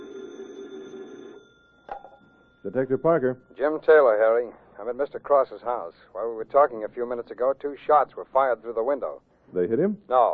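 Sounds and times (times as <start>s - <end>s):
telephone ringing: 0.0s - 5.4s
quiet hum: 0.0s - 10.3s
speech: 2.6s - 10.3s.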